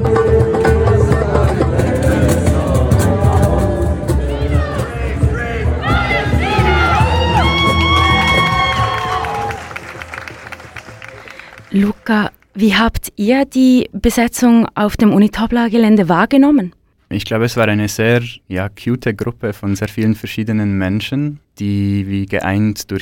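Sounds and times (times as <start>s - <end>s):
students shouting and cheering at a protest during a university campus occupation: 0.2s - 11.9s
speech: 12.1s - 22.9s.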